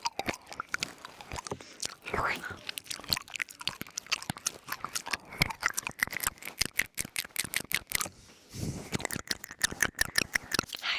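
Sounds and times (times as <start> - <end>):
wet crackly ear nibbling mouth sounds: 0.0 - 10.9.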